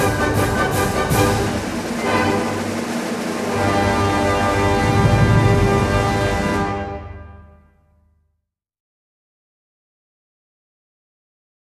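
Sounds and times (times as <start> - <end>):
polka: 0.0 - 7.6.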